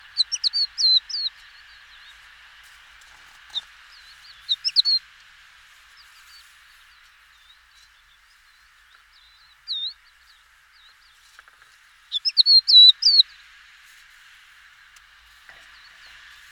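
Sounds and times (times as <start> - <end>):
Crested lark song of clear whistled notes: 0.0 - 2.2, 3.5 - 5.0, 6.0 - 11.2, 12.1 - 13.4.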